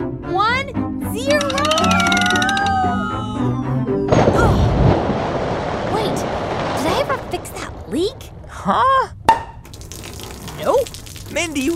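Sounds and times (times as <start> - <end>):
speech: 0.7 - 1.6, 8.7 - 9.2, 10.7 - 11.7
descending whistling tones: 1.3 - 4.1
loud crashing splash of a water landing: 4.1 - 8.0.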